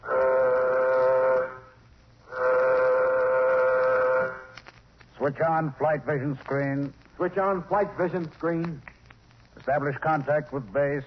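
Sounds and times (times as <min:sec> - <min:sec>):
warning signal horn blasts aboard a nuclear-jet craft preparing for takeoff: 0:00.0 - 0:04.5
speech: 0:05.3 - 0:08.9, 0:09.6 - 0:11.0.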